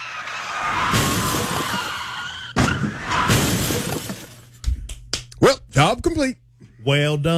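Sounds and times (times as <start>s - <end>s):
car tires screeching: 0.0s - 3.8s
car crashing: 0.2s - 4.5s
speech: 6.1s - 7.3s.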